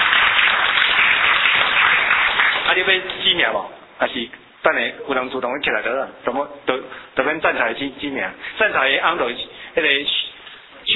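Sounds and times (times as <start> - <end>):
audience applause for a praised performer: 0.0 - 3.0
speech: 2.8 - 10.2.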